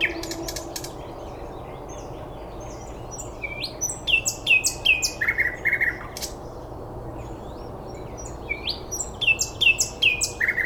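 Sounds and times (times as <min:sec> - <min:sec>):
several birds singing with chirps, trills and ticking notes: 0:00.0 - 0:06.6, 0:07.2 - 0:10.6.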